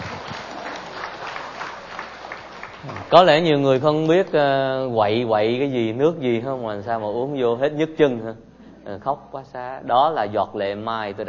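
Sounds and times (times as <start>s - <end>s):
faint audience applause at a Catholic gathering honouring the Virgin Mary: 0.0s - 3.6s
speech: 2.8s - 11.2s.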